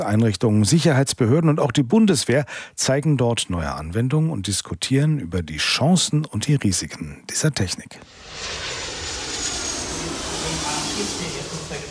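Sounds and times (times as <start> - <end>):
speech: 0.0 - 8.8
airliner taking off outside: 8.0 - 11.8.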